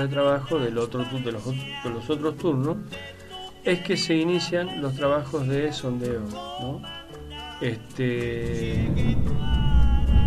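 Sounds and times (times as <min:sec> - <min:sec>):
speech: 0:00.0 - 0:07.0, 0:07.6 - 0:09.5
thunder from a storm overhead rumbling: 0:08.5 - 0:10.2.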